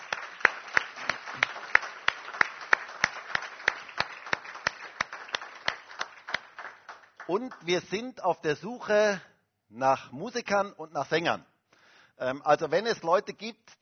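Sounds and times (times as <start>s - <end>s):
audience applauding: 0.0s - 8.0s
speech: 7.3s - 11.5s, 12.2s - 13.7s.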